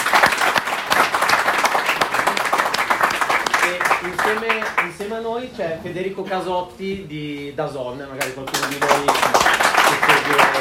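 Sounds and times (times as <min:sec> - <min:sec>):
audience applause: 0:00.0 - 0:04.9, 0:08.4 - 0:10.5
speech: 0:05.1 - 0:10.5.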